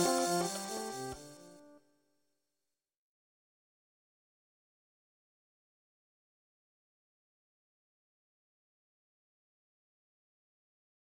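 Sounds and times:
polyrhythm in slendro scale: 0.0 - 1.7.

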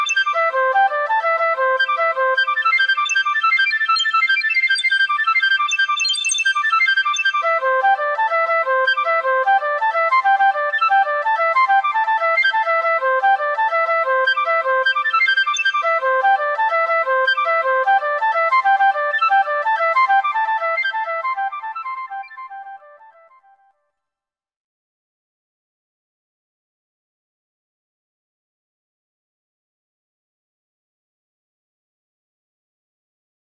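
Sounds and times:
flute: 0.0 - 23.8.

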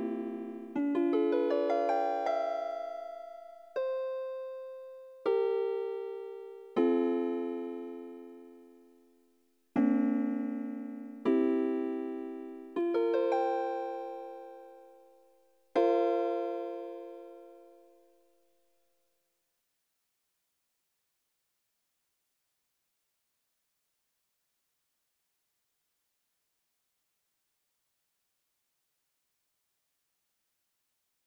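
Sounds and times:
seven-limit octony lullaby: 0.0 - 9.2, 9.8 - 18.7.

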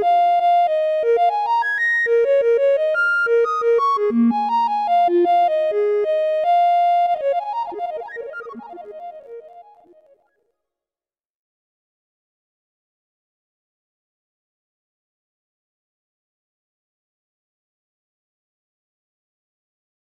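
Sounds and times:
flute pentatonic melody with reflections: 0.1 - 10.0.

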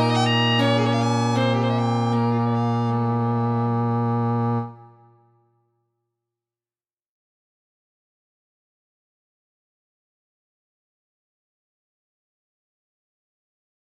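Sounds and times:
string trio playing harmonic minor and septimal minor: 0.0 - 5.0.

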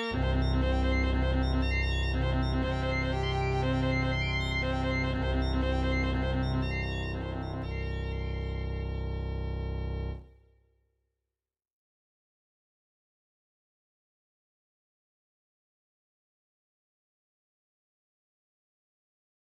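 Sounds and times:
quartet playing: 0.1 - 10.2.

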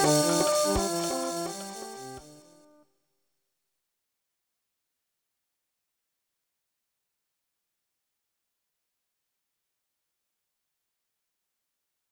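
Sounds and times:
slendro scale polyrhythm: 0.0 - 2.3.

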